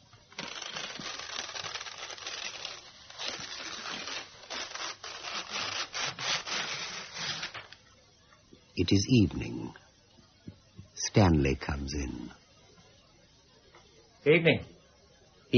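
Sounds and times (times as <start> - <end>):
newspaper being torn into strips at a table: 0.3 - 7.8
speech: 8.8 - 9.8, 11.1 - 12.4, 14.2 - 14.8.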